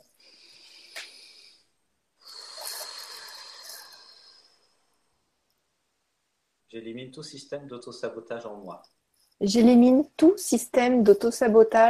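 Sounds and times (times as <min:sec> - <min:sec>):
slow deep breath: 0:00.0 - 0:05.2
speech: 0:06.7 - 0:11.8.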